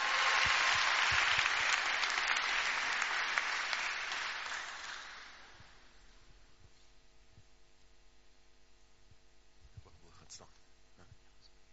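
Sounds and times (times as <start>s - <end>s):
audience clapping: 0.0s - 5.9s.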